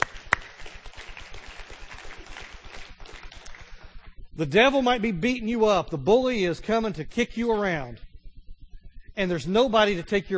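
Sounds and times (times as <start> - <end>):
audience applause: 0.0 - 3.6
speech: 4.4 - 8.1, 9.2 - 10.3.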